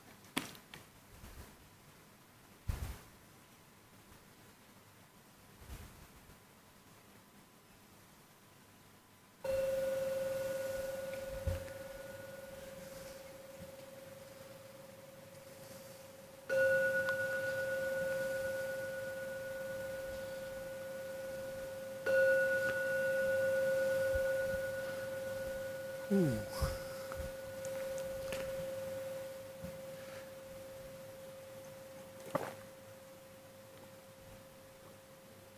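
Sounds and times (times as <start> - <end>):
meditation gong struck and ringing: 9.5 - 13.6, 16.5 - 29.6.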